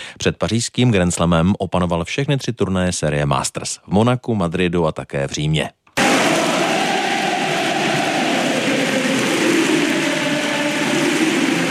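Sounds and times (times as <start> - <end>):
speech: 0.2 - 5.8
tennis fans cheering wildly in Rome: 6.0 - 11.6.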